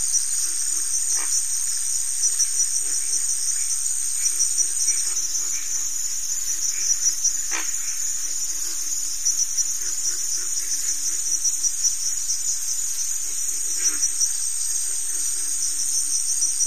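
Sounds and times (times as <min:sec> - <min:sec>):
cricket chorus trilling: 0:00.0 - 0:16.6.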